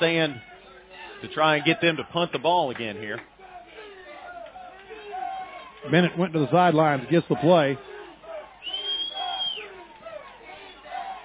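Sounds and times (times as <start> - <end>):
speech: 0.0 - 0.5, 1.2 - 3.3, 5.8 - 7.9
stadium crowd roaring: 0.0 - 11.2
shrill sustained whistle: 8.6 - 9.8.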